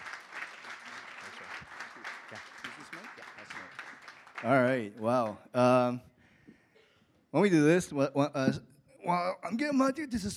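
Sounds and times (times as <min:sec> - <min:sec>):
audience applause welcoming a speaker at a morning gathering: 0:00.0 - 0:05.4
speech: 0:04.4 - 0:06.1, 0:07.3 - 0:10.3.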